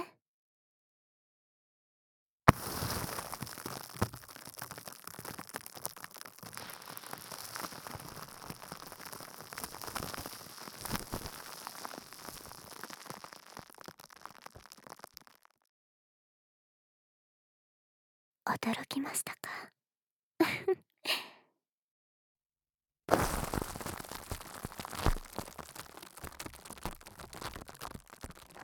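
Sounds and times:
fizzing carbonated water: 0:02.5 - 0:15.6, 0:23.1 - 0:28.6
speech: 0:18.5 - 0:19.6.

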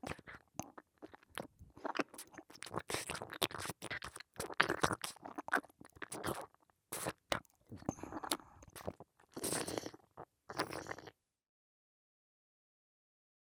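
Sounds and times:
ear licking: 0:00.0 - 0:09.9.

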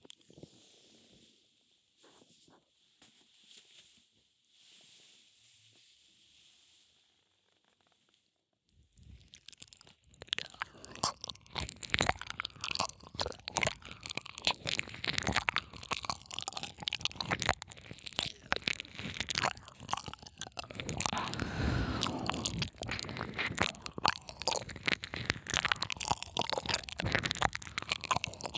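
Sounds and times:
yandere maid licking ears: 0:09.1 - 0:28.5.

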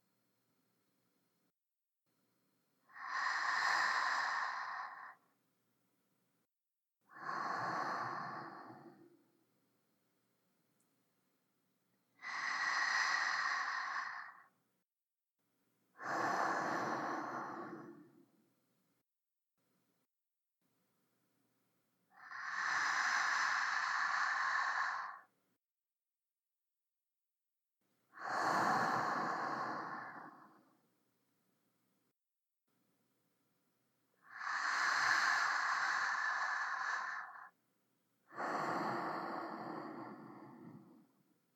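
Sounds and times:
sleeping breath: 0:02.9 - 0:05.3, 0:07.1 - 0:09.4, 0:12.2 - 0:14.5, 0:16.0 - 0:18.4, 0:22.1 - 0:25.3, 0:28.2 - 0:30.8, 0:34.2 - 0:37.6, 0:38.3 - 0:41.3.

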